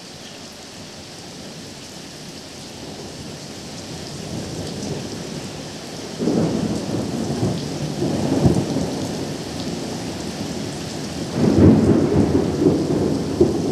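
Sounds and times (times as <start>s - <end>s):
thunderstorm: 4.1s - 13.7s.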